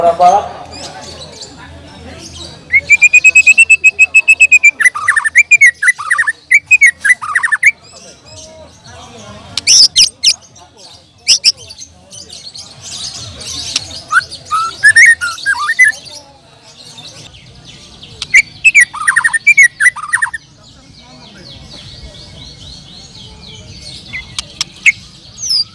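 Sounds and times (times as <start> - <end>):
faint chirps: 0.1 - 25.7
bird whistling and chirping: 2.7 - 7.8, 14.0 - 16.0, 18.2 - 20.4.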